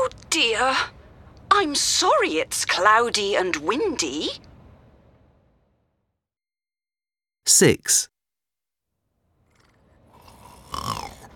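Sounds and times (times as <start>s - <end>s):
speech: 0.3s - 1.0s, 1.6s - 4.5s, 7.5s - 8.1s
child snoring in sleep: 9.5s - 11.3s.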